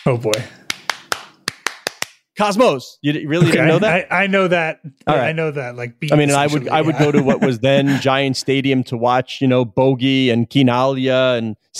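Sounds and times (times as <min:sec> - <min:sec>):
speech: 0:00.0 - 0:00.6, 0:02.4 - 0:11.7
rhythmic hand clapping of a stadium chant: 0:00.0 - 0:02.3
laughter: 0:03.3 - 0:04.3, 0:06.1 - 0:08.6.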